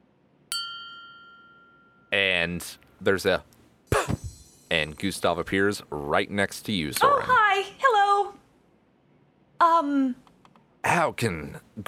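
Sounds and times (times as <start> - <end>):
small bell struck: 0.5 - 2.3
speech: 2.4 - 4.0, 4.7 - 7.9, 11.0 - 11.8.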